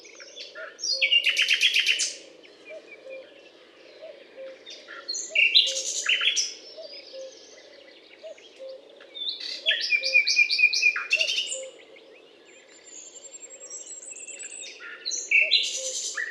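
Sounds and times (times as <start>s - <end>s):
common nightingale singing on a limestone hillock in France: 0.0s - 16.2s.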